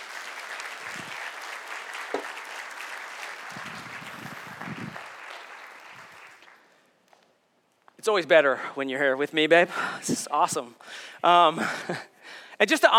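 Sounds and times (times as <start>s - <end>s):
audience applauding: 0.0s - 6.8s
speech: 8.1s - 12.9s.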